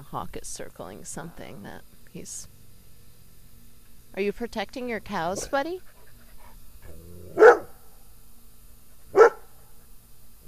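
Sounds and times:
speech: 0.0s - 2.5s, 4.2s - 5.9s
dog barking: 7.4s - 7.8s, 9.1s - 9.6s.

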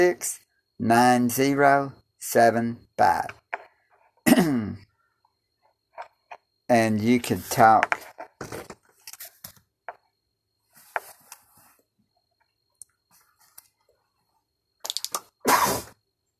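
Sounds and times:
speech: 0.0s - 3.4s, 4.3s - 4.9s, 6.7s - 8.7s
loud, sharp sneeze: 15.4s - 16.0s.

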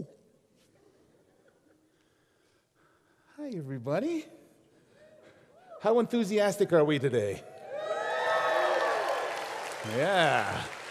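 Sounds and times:
speech: 3.4s - 4.4s, 5.8s - 7.5s, 9.8s - 10.8s
crowd cheering and shouting: 7.6s - 10.8s
scattered clapping: 8.8s - 10.9s.

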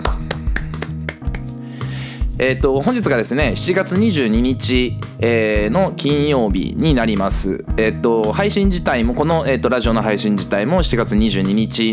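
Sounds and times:
clapping: 0.0s - 1.6s
speech: 2.4s - 11.9s.

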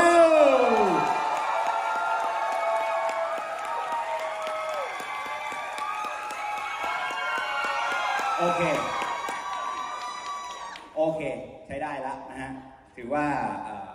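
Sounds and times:
crowd applauding: 0.0s - 10.9s
speech: 11.2s - 13.8s.

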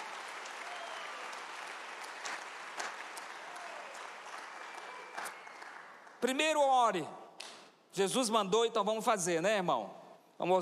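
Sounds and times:
audience applause: 0.0s - 6.2s
speech: 6.2s - 7.2s, 8.0s - 10.6s.

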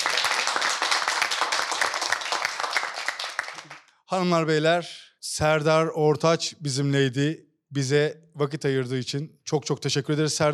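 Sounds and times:
audience clapping: 0.0s - 3.9s
speech: 4.1s - 10.5s.

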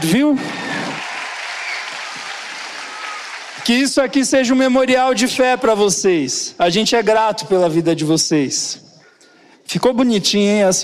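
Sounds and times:
speech: 0.0s - 0.8s, 3.7s - 8.8s, 9.7s - 10.8s
audience applause: 0.4s - 3.9s.

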